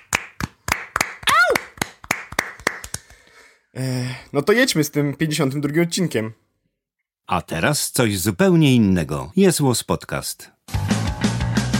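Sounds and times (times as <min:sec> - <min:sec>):
applause: 0:00.0 - 0:03.3
speech: 0:03.8 - 0:06.4, 0:07.3 - 0:10.8.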